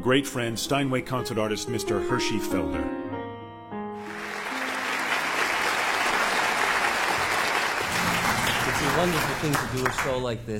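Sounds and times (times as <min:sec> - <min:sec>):
speech: 0:00.0 - 0:03.0, 0:09.0 - 0:10.5
audience applause at a live concert show with a piano performer: 0:04.0 - 0:10.3.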